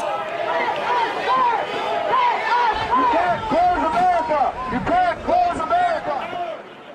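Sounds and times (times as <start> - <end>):
street protest crowd: 0.0 - 6.9.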